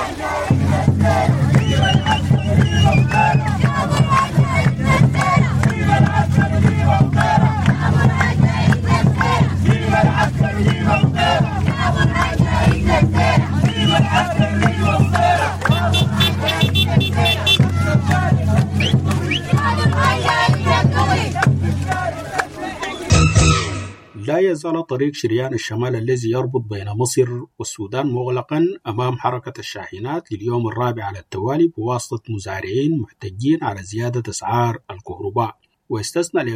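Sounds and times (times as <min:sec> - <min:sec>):
protest crowd chanting slogans in Atbara, Sudan: 0:00.0 - 0:24.2
speech: 0:24.6 - 0:36.5.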